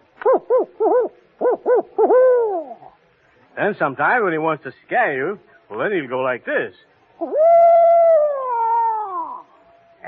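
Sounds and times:
person imitating an owl's contented hooting: 0:00.2 - 0:03.0, 0:07.2 - 0:09.6
speech: 0:03.6 - 0:07.9.

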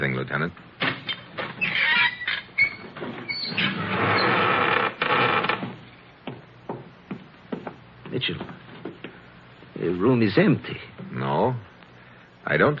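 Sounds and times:
speech: 0:00.0 - 0:00.7, 0:08.2 - 0:08.6, 0:09.8 - 0:11.6, 0:12.5 - 0:12.7
hidden door creaking open: 0:00.8 - 0:05.8.

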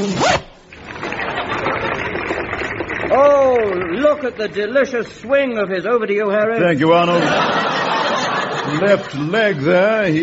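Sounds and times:
speech: 0:00.0 - 0:00.5, 0:03.2 - 0:07.6, 0:08.7 - 0:10.2
zip being pulled up on check trousers: 0:00.0 - 0:04.3
laughter: 0:00.9 - 0:05.1, 0:06.6 - 0:10.2.

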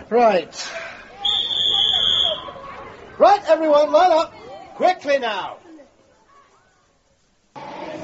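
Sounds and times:
speech: 0:00.1 - 0:00.8, 0:03.2 - 0:05.6
long shrill whistle blast: 0:01.2 - 0:02.6.

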